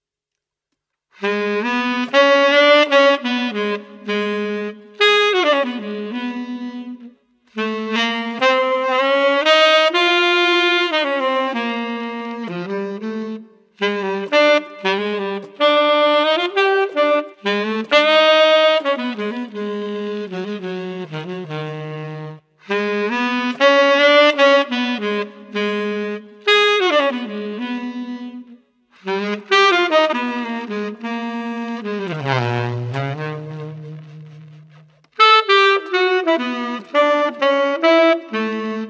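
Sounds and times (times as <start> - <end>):
melancholy street saxophone: 1.1 - 38.8.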